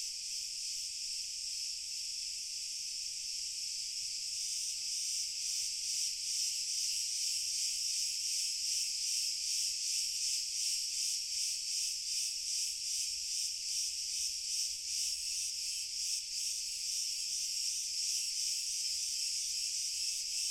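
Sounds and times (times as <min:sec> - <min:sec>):
crickets chorus trilling: 0:00.0 - 0:20.4.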